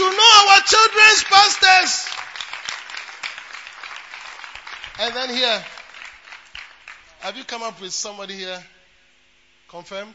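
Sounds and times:
audience clapping: 0.0 - 7.6
speech: 5.0 - 5.8, 7.2 - 8.7, 9.7 - 10.1.

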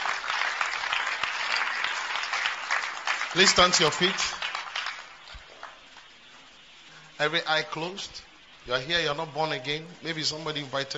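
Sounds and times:
audience applause: 0.0 - 6.0
speech: 3.3 - 4.4, 7.2 - 10.9.

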